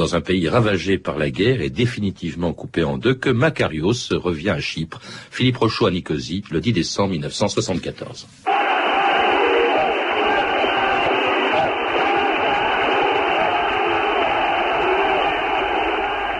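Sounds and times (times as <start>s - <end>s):
speech: 0.0s - 8.5s
Greek Cypriots cheering and chanting for Archbishop Makarios's return in Nicosia: 8.5s - 16.3s.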